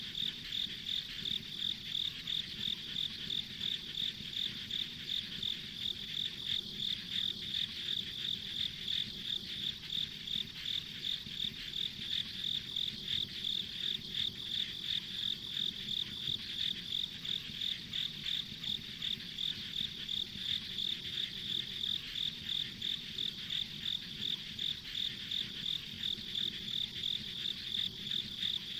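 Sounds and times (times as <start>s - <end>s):
insect chorus, rhythmic high chirps: 0.0s - 28.7s.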